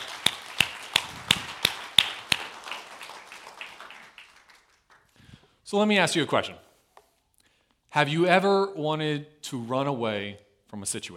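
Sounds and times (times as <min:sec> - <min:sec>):
audience clapping: 0:00.0 - 0:05.5
speech: 0:05.7 - 0:06.6, 0:08.0 - 0:11.1.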